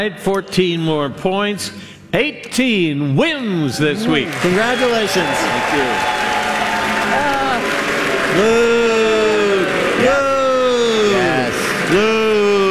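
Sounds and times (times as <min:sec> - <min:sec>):
speech: 0:00.0 - 0:06.3, 0:08.4 - 0:08.8
canned studio audience applause on a quiz show: 0:00.0 - 0:12.6
laughter: 0:00.0 - 0:12.6
studio audience voiced whoops: 0:04.0 - 0:12.6.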